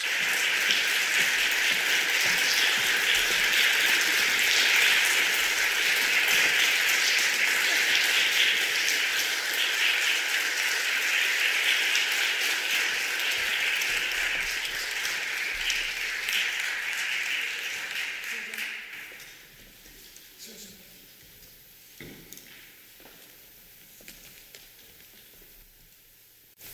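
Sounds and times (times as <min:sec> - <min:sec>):
audience applause: 0:00.0 - 0:19.2.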